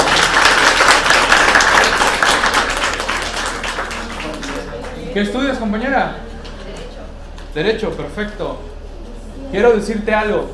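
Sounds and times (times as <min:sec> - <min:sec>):
audience applause: 0:00.0 - 0:05.1
speech: 0:05.2 - 0:06.2, 0:07.6 - 0:08.8, 0:09.5 - 0:10.5.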